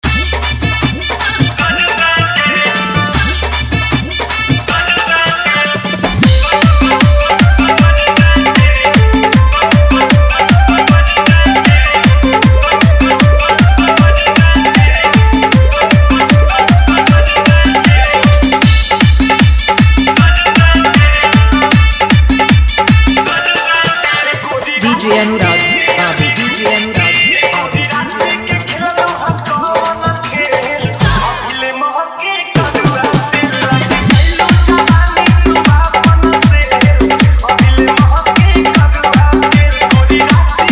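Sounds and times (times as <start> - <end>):
dholak drum bass-heavy dance mix: 0.0 - 31.9, 32.5 - 40.7.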